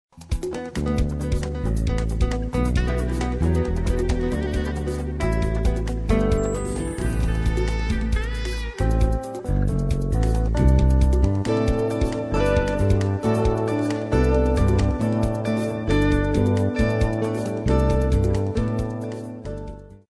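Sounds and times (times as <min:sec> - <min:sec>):
new age music: 0:00.2 - 0:20.0.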